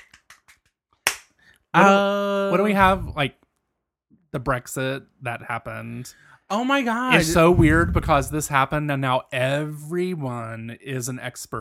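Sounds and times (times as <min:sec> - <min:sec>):
golf clap, light polite clapping: 0:00.0 - 0:01.3
speech: 0:01.8 - 0:03.4, 0:04.3 - 0:11.5.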